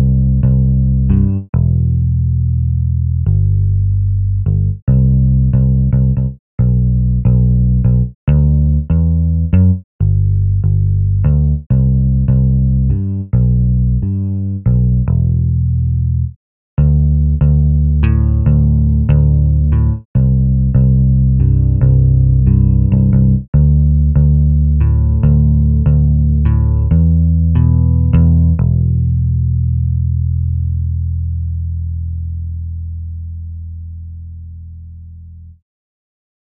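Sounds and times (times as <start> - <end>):
pop bass line: 0.0 - 34.9.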